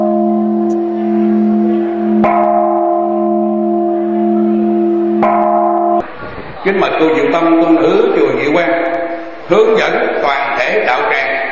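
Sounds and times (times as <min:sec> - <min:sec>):
Buddhist temple prajna bell ringing during a ceremony: 0:00.0 - 0:06.2, 0:07.4 - 0:09.8
speech: 0:06.7 - 0:11.4.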